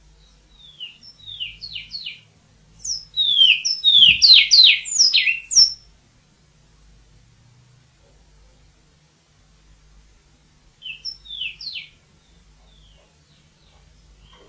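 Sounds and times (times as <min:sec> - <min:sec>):
Surinamese twa twa songbird calling: 0:00.0 - 0:05.9, 0:10.8 - 0:14.4.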